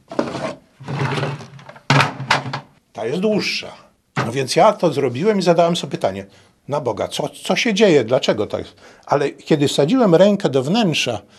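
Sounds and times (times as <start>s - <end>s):
drawers of a wooden chest being pulled out: 0.0s - 2.7s
speech: 3.0s - 11.3s.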